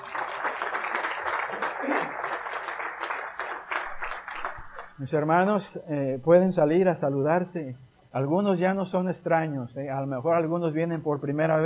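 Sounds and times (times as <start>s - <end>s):
audience applause: 0.0s - 5.0s
speech: 5.0s - 11.6s.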